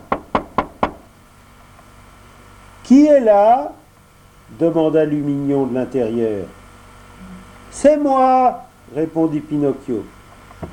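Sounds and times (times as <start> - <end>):
knocks on a door: 0.0 - 1.1
speech: 2.9 - 3.8, 4.5 - 6.6, 7.7 - 10.2.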